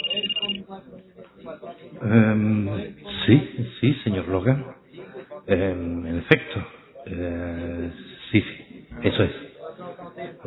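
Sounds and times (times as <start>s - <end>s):
office telephone ringing: 0.0s - 0.6s
speech: 0.7s - 4.8s, 5.4s - 9.4s.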